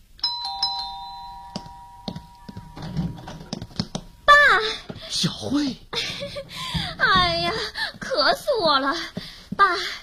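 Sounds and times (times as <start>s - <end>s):
doorbell ringing: 0.2s - 4.6s
speech: 4.6s - 10.0s.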